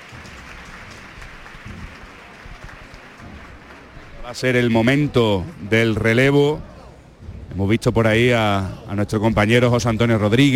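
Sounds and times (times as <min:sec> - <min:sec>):
thunderous crowd applause: 0:00.0 - 0:07.1
speech: 0:04.3 - 0:06.7, 0:07.6 - 0:10.5.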